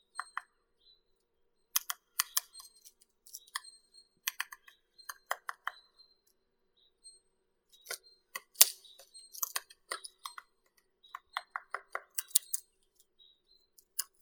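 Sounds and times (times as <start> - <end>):
three-toed woodpecker Picoides tridactylus: 1.8 - 6.2, 7.8 - 12.7, 13.8 - 14.2.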